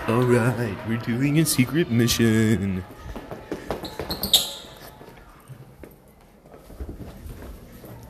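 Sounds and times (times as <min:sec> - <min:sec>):
speech: 0:00.1 - 0:03.1
soft footsteps walking in an ASMR recording: 0:03.1 - 0:08.0.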